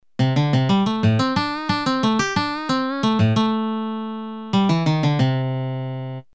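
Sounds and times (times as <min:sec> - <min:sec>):
musical lick: 0:00.2 - 0:06.3.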